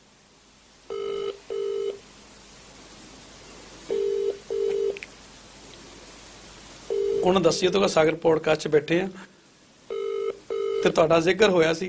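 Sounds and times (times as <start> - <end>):
faint telephone line hiss: 0.0 - 11.8
telephone ringback tones on speakerphone: 0.9 - 2.0, 3.9 - 5.0, 6.9 - 7.4, 9.9 - 10.9
speech: 7.2 - 9.3, 10.8 - 11.8.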